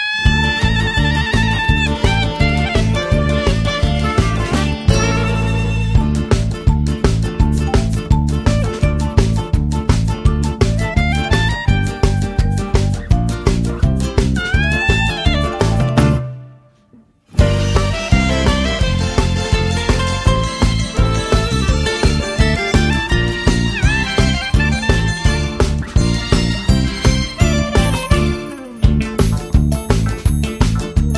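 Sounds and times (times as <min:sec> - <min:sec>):
market song backing track: 0:00.1 - 0:31.1.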